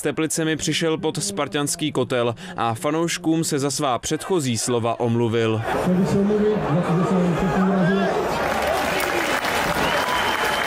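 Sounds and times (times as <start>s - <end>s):
speech: 0.0s - 8.4s
football fans applauding: 7.5s - 10.6s.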